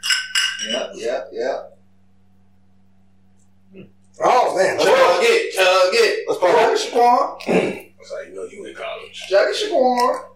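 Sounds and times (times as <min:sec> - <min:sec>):
glasses clinking in a toast: 0:00.0 - 0:01.0
speech: 0:00.6 - 0:01.7, 0:03.8 - 0:10.3.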